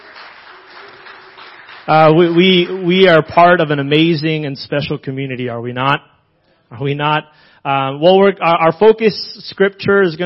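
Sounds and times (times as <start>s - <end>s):
church audience applause: 0.0s - 3.1s
speech: 1.8s - 6.1s, 6.7s - 10.2s.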